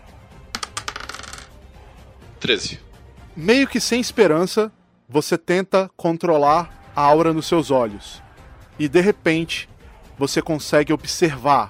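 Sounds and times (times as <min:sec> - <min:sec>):
twenty-sided die clattering across a hard surface: 0:00.6 - 0:01.5
speech: 0:02.4 - 0:08.2, 0:08.8 - 0:11.6.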